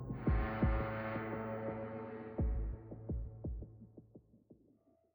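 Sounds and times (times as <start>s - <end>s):
military music: 0.1s - 3.7s.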